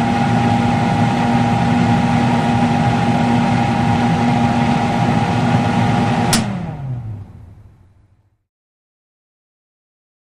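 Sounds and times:
overhead stove ventilator fan humming in restaurant kitchen: 0.0 - 8.4
oven hood ventilator fan switch click: 6.3 - 6.8.

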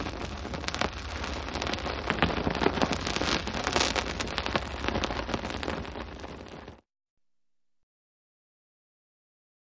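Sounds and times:
hand held torch fire burning: 0.0 - 6.8.

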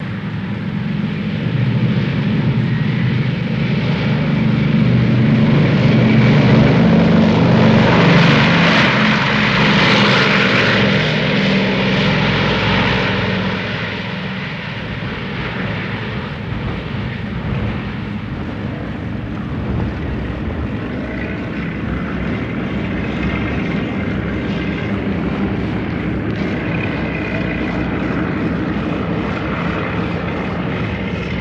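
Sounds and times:
B-29 Superfortress taking off: 0.0 - 31.3.

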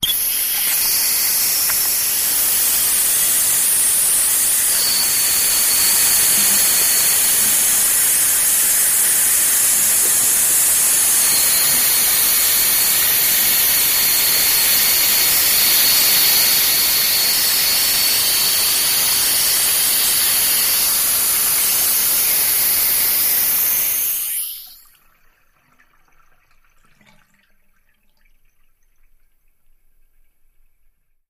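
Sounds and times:
watery steam: 0.0 - 24.8.

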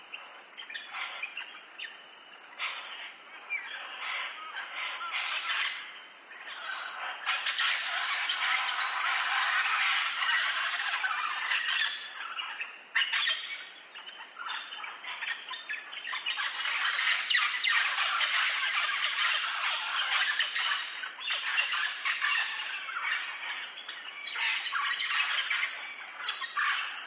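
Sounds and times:
green parrots calling: 0.0 - 27.0.

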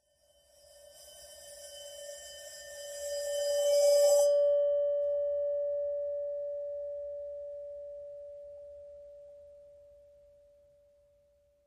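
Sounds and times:
bowed cattle bell: 0.6 - 9.2.

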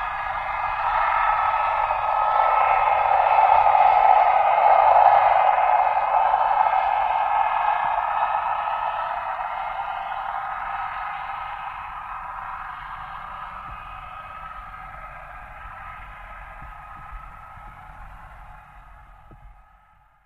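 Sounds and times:
torpedo jet passing by: 0.1 - 13.4.

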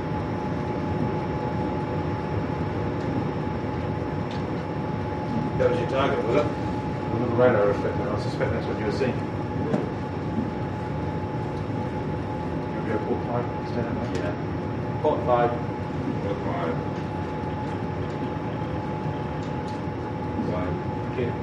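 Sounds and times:
cruise ship bridge interior ambience: 0.0 - 21.4.

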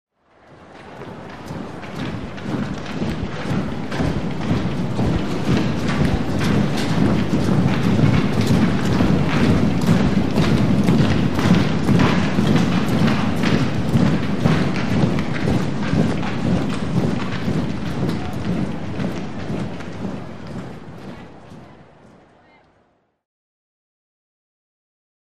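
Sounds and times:
arena foot stomps: 0.7 - 22.2.

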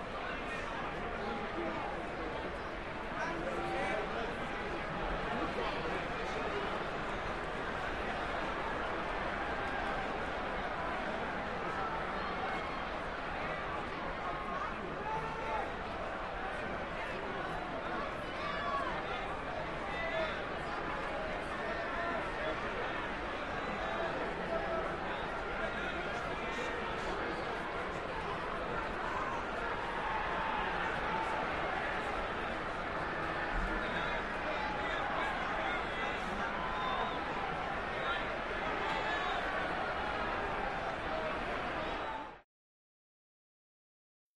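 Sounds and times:
sports arena crowd cheering: 0.0 - 42.4.

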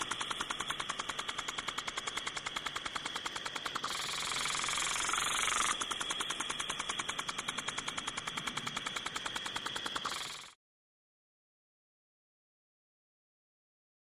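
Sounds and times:
sprinkler spraying: 0.0 - 10.5.

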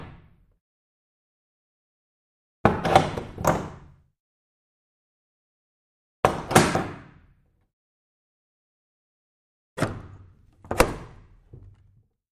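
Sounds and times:
bolts from medium size wood and glass door: 2.7 - 3.9, 6.3 - 7.1, 9.8 - 12.0.

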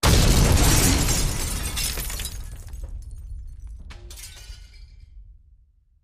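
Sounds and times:
explosion: 0.0 - 4.1
glass debris: 0.0 - 5.1.

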